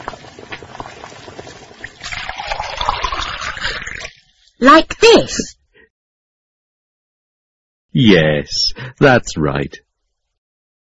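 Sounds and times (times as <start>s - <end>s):
hot water poured onto instant noodles: 0.0s - 4.6s
speech: 4.6s - 5.5s, 8.0s - 9.8s.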